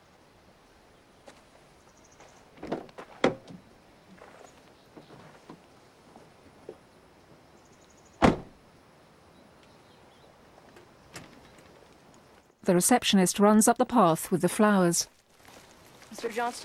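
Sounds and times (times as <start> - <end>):
soft clunks and rustles as a man gets into a car: 2.2 - 6.9, 10.6 - 12.5
car door thump as a man gets into a car: 8.2 - 8.6
speech: 12.7 - 15.2, 16.2 - 16.6.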